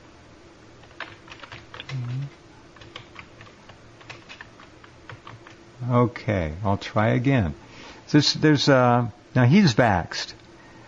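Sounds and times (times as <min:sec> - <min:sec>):
typing on a computer keyboard: 0:00.8 - 0:05.6
speech: 0:05.8 - 0:10.4.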